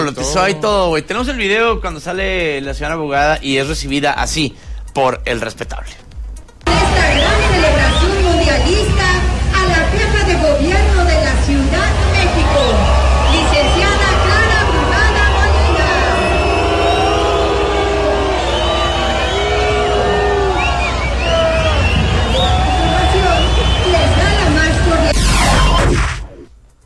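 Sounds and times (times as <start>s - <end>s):
speech: 0.1s - 6.1s
crowd booing: 6.7s - 26.4s.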